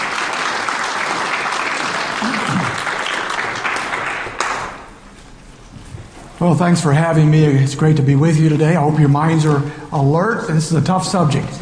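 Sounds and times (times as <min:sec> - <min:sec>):
audience at a Bible lecture applauding a speaker: 0:00.0 - 0:04.9
speech: 0:06.4 - 0:11.6.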